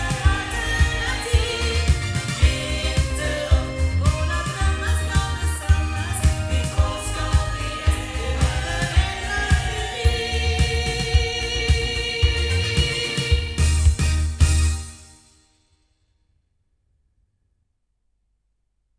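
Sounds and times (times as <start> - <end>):
loudspeakers: 0.0 - 14.7.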